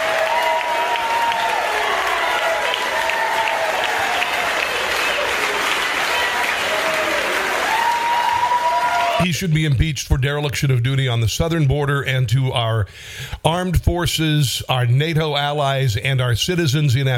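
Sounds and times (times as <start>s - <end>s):
large crowd clapping: 0.0s - 9.3s
speech: 9.2s - 17.1s.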